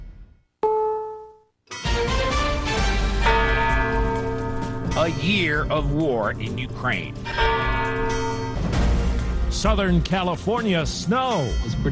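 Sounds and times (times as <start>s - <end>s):
courthouse clock bell striking the hour: 1.7s - 11.9s
loud dense music: 1.9s - 11.2s
speech: 5.1s - 7.6s, 9.5s - 11.9s.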